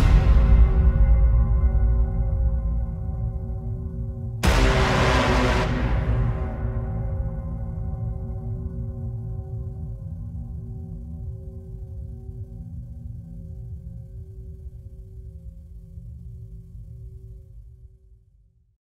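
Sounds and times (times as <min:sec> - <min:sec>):
epic intense hybrid horror trailer music: 0:00.0 - 0:10.3.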